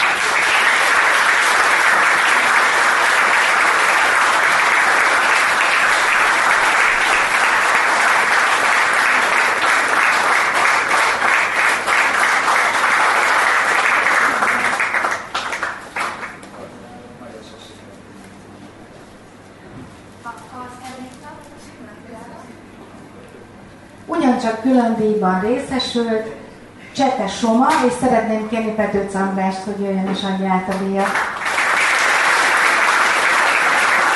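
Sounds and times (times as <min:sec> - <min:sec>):
audience applause: 0:00.0 - 0:16.5, 0:31.0 - 0:34.1
speech: 0:24.7 - 0:26.4, 0:27.0 - 0:31.2.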